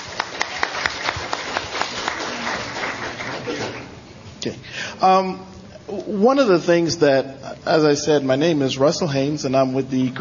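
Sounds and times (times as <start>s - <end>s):
audience applause: 0.0s - 3.9s
speech: 4.4s - 10.1s.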